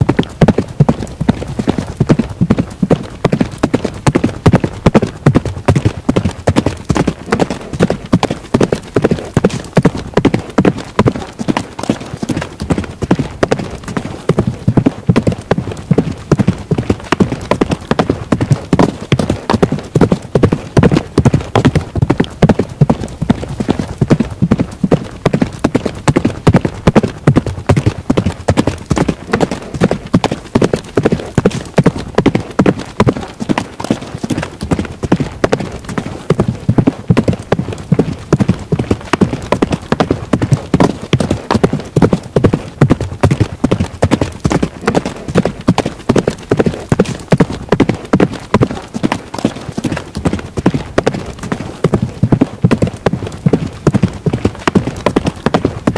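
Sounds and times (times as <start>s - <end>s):
galloping: 0.0s - 55.9s.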